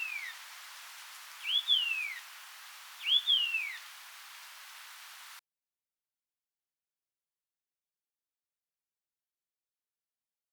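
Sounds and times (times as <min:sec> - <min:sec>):
Carterornis leucotis white-eared monarch call: 0:00.0 - 0:00.4, 0:01.4 - 0:02.3, 0:03.0 - 0:03.9.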